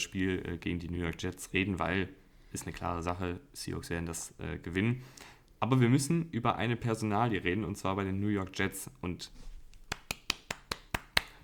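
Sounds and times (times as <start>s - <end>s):
speech: 0.0s - 9.5s
hand claps: 9.8s - 11.4s.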